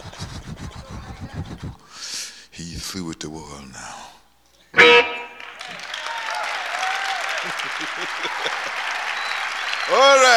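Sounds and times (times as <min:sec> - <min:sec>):
audience applause: 0:00.0 - 0:01.8, 0:05.3 - 0:10.3
laughter: 0:00.0 - 0:03.5, 0:05.6 - 0:10.3
speech: 0:02.8 - 0:04.0, 0:09.9 - 0:10.3.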